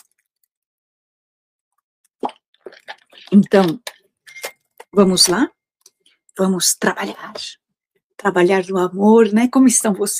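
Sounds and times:
person taking a sip of water: 2.1s - 4.1s
speech: 3.3s - 3.9s, 4.9s - 5.6s, 6.4s - 7.6s, 8.2s - 10.1s.

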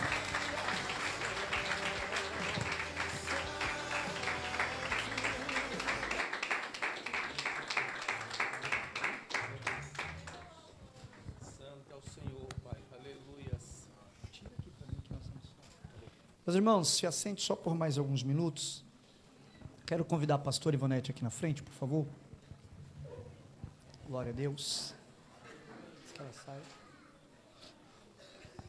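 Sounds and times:
music: 0.0s - 7.2s
audience applause: 0.0s - 10.5s
speech: 16.5s - 18.8s, 19.9s - 22.2s, 24.1s - 25.0s, 26.2s - 26.8s.

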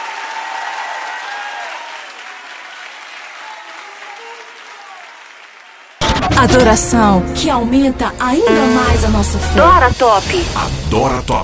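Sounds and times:
audience applauding: 0.0s - 6.4s
speech: 6.4s - 11.4s.

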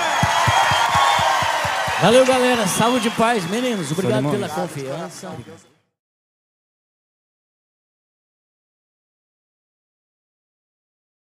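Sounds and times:
large crowd clapping and cheering: 0.0s - 5.7s
speech: 2.0s - 5.7s.

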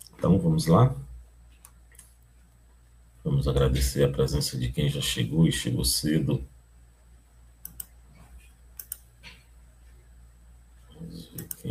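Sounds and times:
low steady hum: 0.0s - 11.6s
speech: 0.2s - 1.1s, 3.4s - 6.5s
computer mouse clicking: 7.6s - 8.0s, 8.7s - 9.4s, 11.3s - 11.6s.

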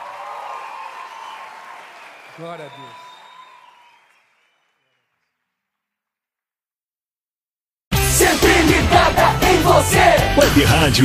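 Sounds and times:
audience applauding: 0.0s - 5.4s
speech: 2.4s - 3.0s, 9.0s - 11.0s.

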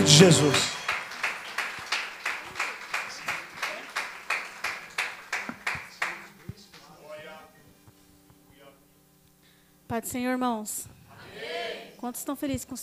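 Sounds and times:
speech: 0.0s - 0.7s, 10.0s - 12.8s
audience applause: 0.0s - 6.5s.

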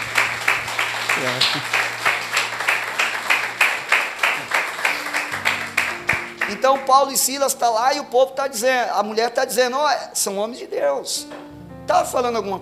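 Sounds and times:
crowd clapping rhythmically: 0.0s - 7.5s
speech: 1.2s - 1.8s, 6.5s - 12.5s.

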